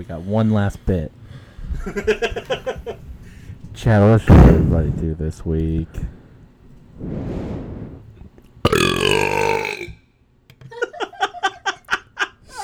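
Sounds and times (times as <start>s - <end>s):
speech: 0.0s - 3.2s, 3.8s - 6.2s, 7.0s - 7.5s
loud burp: 8.7s - 10.0s.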